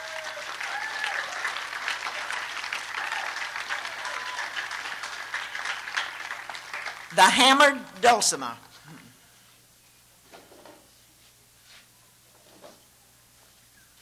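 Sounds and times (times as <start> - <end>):
faint whistles or cheers: 0.0 - 5.9
audience clapping: 0.0 - 8.7
speech: 7.2 - 8.7.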